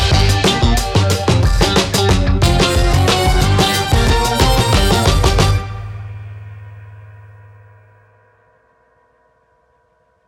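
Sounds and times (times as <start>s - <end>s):
1970s funk track: 0.0s - 6.5s.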